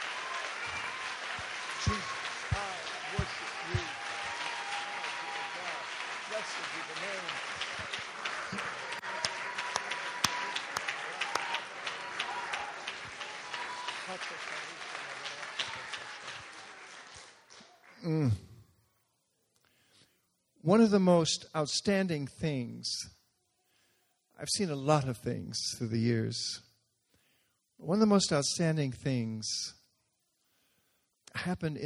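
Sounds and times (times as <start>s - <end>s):
audience clapping: 0.0s - 18.3s
speech: 20.8s - 23.2s, 24.4s - 26.7s, 27.8s - 29.8s, 31.4s - 31.8s.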